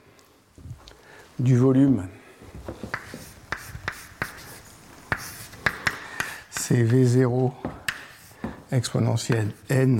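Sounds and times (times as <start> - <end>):
speech: 1.4 - 2.8, 6.7 - 7.8, 8.7 - 9.9
writing out an equation by hand during a maths lecture: 2.9 - 7.2, 7.9 - 9.9.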